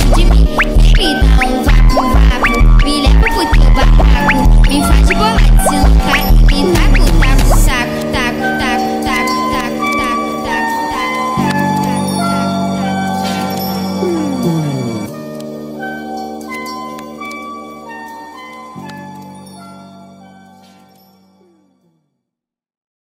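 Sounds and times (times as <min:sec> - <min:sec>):
Brazilian funk remix music: 0:00.0 - 0:15.2.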